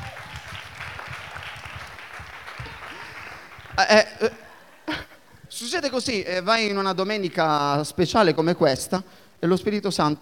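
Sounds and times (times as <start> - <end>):
audience applauding at a Sunday church service: 0.0 - 4.6
speech: 3.8 - 4.4, 5.6 - 10.2.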